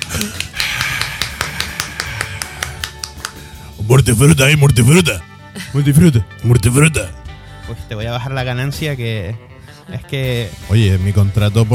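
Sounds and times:
applause: 0.0 - 3.5
speech: 3.9 - 11.7.

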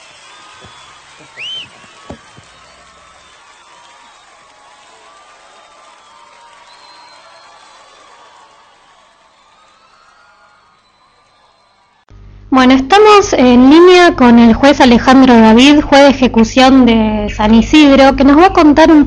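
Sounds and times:
rising whistle: 0.0 - 4.5, 5.9 - 7.9, 9.5 - 12.0
scattered shouts: 0.0 - 12.0
audience applause: 0.0 - 12.1
speech: 0.6 - 2.2, 12.6 - 19.0.

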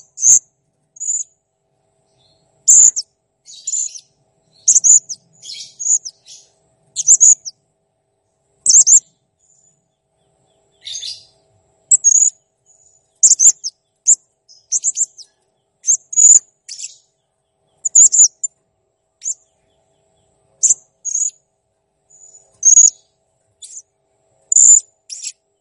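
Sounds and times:
blue-crowned hanging parrot quick high ticking chirps: 2.7 - 4.1, 4.7 - 6.4, 7.0 - 7.5, 8.7 - 9.0, 11.9 - 12.4, 13.2 - 17.0, 17.8 - 18.5, 20.6 - 21.4, 22.2 - 23.0, 23.6 - 23.8, 24.5 - 25.4.

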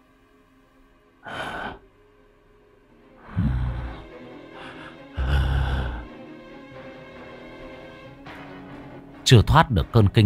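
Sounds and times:
heavy huffing snorting breath from a dark tree hollow: 3.3 - 6.2
speech: 9.3 - 10.2.

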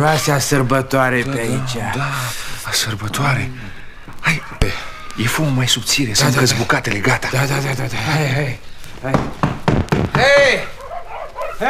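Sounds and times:
speech: 0.0 - 9.5, 10.2 - 10.8
knocking on a door at a village household: 9.1 - 10.7.

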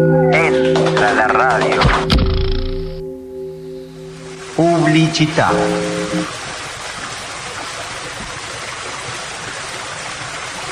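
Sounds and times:
speech: 0.0 - 1.8, 4.9 - 6.4
pure water flowing along its stream bed: 4.2 - 10.6.

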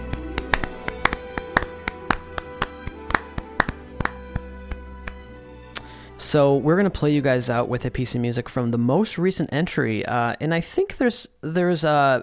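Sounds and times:
small round of applause: 0.0 - 5.9
speech: 6.2 - 12.2.

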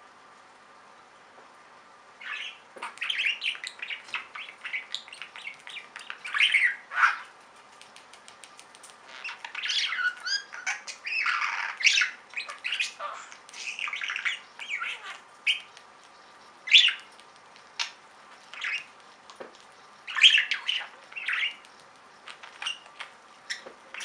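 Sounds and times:
budgerigar chirping: 2.2 - 7.3, 9.1 - 15.7, 16.6 - 17.1, 17.7 - 19.0, 20.0 - 21.6, 22.6 - 24.0.

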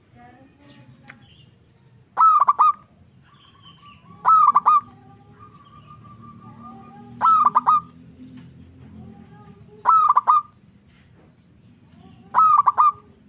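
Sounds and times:
zebra dove cooing: 2.2 - 8.0, 9.8 - 10.6, 12.2 - 13.2.

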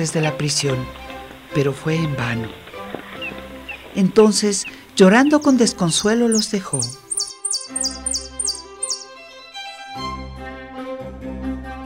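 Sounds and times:
speech: 0.0 - 2.6, 4.0 - 7.0
caged goldfinch chicks chirping: 3.2 - 9.1.

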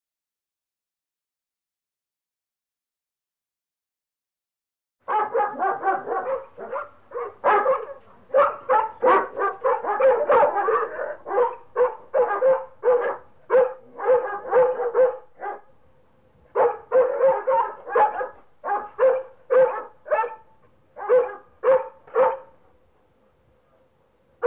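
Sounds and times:
dog barking sharp yaps: 5.1 - 15.7, 16.6 - 20.4, 21.0 - 22.5.

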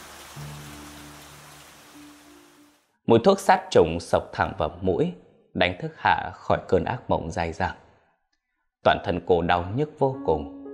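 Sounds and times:
heavy rain pouring: 0.0 - 2.8
speech: 3.1 - 7.8, 8.8 - 10.6.

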